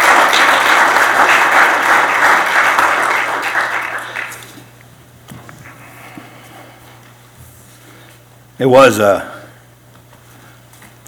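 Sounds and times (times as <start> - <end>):
audience applause: 0.0 - 4.7
speech: 8.6 - 9.3.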